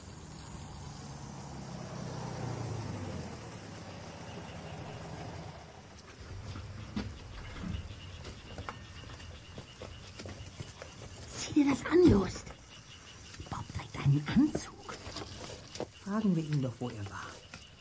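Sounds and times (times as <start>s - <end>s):
yellow Beetle car engine rumble: 0.0s - 11.1s
speech: 11.6s - 12.4s, 16.2s - 17.3s.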